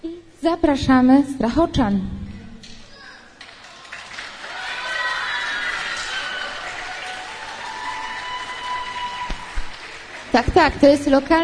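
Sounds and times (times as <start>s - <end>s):
speech: 0.4s - 2.2s, 10.3s - 11.4s
audience applause: 3.4s - 11.4s.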